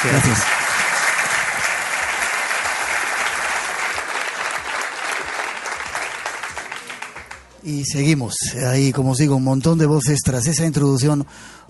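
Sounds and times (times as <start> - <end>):
speech: 0.0 - 0.6, 7.6 - 11.6
audience clapping: 0.0 - 7.6.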